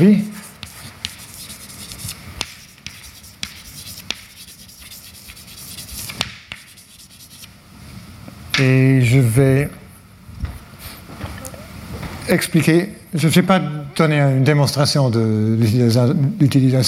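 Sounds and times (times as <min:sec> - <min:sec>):
speech: 0:00.0 - 0:00.3, 0:08.6 - 0:09.8, 0:12.3 - 0:16.8
pen scratching on paper writing a name by hand: 0:00.4 - 0:07.5.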